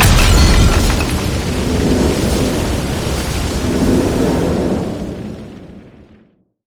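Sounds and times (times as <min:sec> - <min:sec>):
boom: 0:00.0 - 0:03.8.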